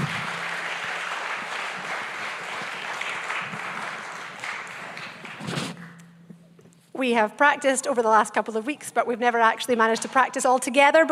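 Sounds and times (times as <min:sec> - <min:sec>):
audience applauding children: 0:00.0 - 0:06.0
speech: 0:07.0 - 0:11.1.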